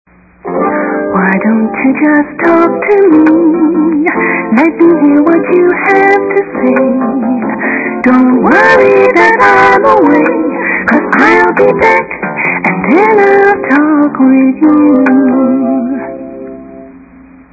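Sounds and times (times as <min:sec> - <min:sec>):
soft contemporary music: 0:00.5 - 0:17.0.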